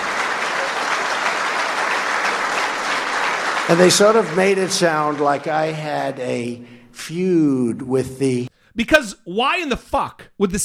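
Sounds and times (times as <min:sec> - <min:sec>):
CIA audience applauding Donald Trump's remark: 0:00.0 - 0:06.2
speech: 0:03.7 - 0:10.6.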